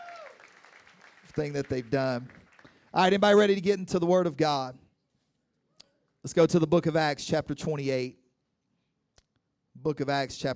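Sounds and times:
crowd shouting and cheering: 0:00.0 - 0:00.6
soft audience clapping: 0:00.0 - 0:02.9
speech: 0:01.4 - 0:04.8, 0:06.2 - 0:08.2, 0:09.8 - 0:10.5.

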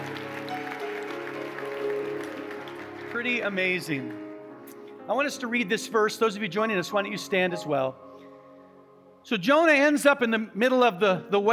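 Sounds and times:
church congregation applauding to welcome the online church family: 0:00.0 - 0:04.7
soft sustained music during a church service: 0:00.0 - 0:11.5
speech: 0:03.2 - 0:04.2, 0:05.1 - 0:08.0, 0:09.2 - 0:11.5.

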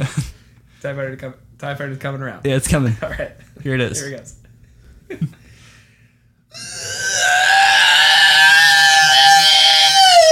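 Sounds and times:
voice imitating a TIE Fighter flying past: 0:06.6 - 0:10.3.

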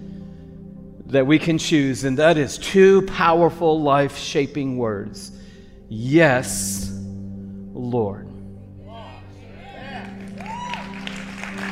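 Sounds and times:
speech: 0:01.1 - 0:06.9, 0:07.8 - 0:08.3
audience clapping: 0:09.9 - 0:11.7.

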